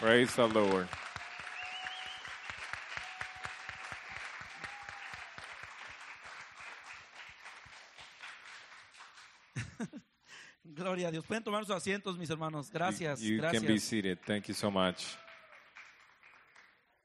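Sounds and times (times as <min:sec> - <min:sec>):
speech: 0:00.0 - 0:01.0, 0:10.8 - 0:15.2
audience applause: 0:00.0 - 0:09.8, 0:13.6 - 0:17.0.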